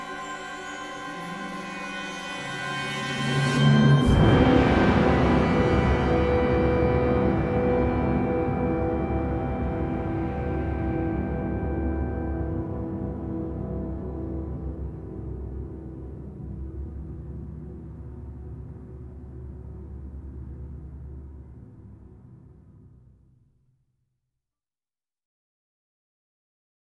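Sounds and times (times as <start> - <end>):
open trumpet: 0.0 - 15.9.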